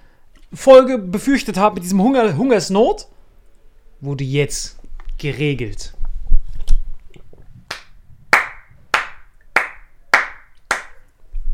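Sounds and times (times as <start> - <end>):
speech: 0.5 - 3.2, 4.0 - 6.0
hand clapping: 7.7 - 11.0.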